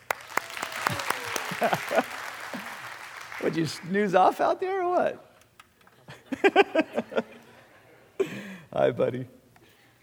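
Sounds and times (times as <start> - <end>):
crowd clapping: 0.0 - 4.3
laughter: 0.9 - 2.8, 5.8 - 8.4
speech: 1.6 - 2.2, 3.4 - 5.3, 6.4 - 7.4, 8.8 - 9.4.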